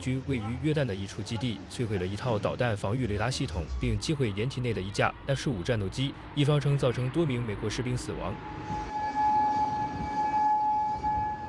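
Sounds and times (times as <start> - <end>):
speech: 0.0 - 9.0
low rumbling noise: 0.0 - 11.4
air raid siren wailing: 3.2 - 11.4.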